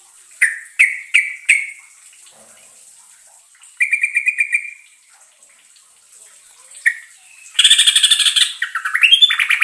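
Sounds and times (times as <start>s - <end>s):
yellow-vented bulbul song: 0.4s - 1.9s, 3.7s - 4.8s, 6.8s - 9.6s.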